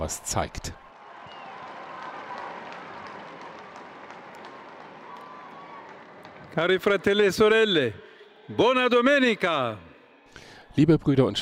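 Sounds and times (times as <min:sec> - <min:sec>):
speech: 0:00.0 - 0:00.8, 0:06.6 - 0:11.4
large crowd cheering: 0:00.0 - 0:10.1
people clapping: 0:00.9 - 0:08.0.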